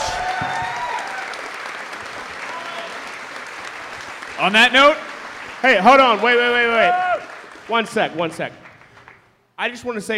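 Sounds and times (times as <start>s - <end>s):
crowd applause: 0.0s - 9.3s
speech: 4.4s - 5.0s, 5.6s - 7.0s, 7.7s - 8.6s, 9.6s - 10.1s.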